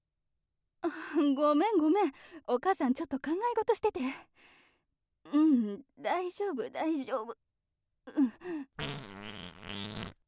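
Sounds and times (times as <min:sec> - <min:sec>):
speech: 0:00.9 - 0:04.6, 0:05.2 - 0:07.4, 0:08.1 - 0:09.2
fart: 0:08.8 - 0:10.2.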